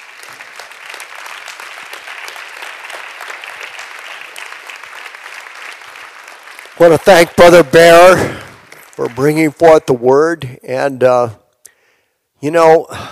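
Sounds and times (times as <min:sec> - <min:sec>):
audience clapping hands: 0:00.0 - 0:10.5
speech: 0:06.8 - 0:08.4, 0:09.0 - 0:11.4, 0:12.4 - 0:13.1.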